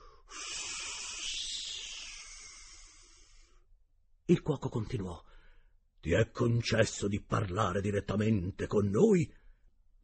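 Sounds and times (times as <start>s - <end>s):
person hissing with the voice: 0.0s - 3.5s
speech: 4.3s - 5.3s, 6.0s - 9.4s.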